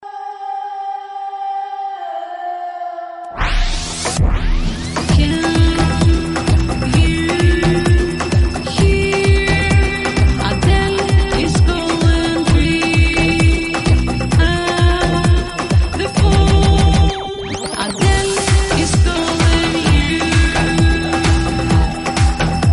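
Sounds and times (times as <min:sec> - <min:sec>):
dance music: 0:02.1 - 0:22.7.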